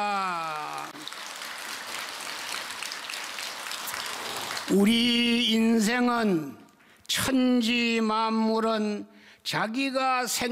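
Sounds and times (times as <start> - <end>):
applause with palms joined: 0.0 - 5.5
speech: 4.7 - 6.6, 7.2 - 10.5.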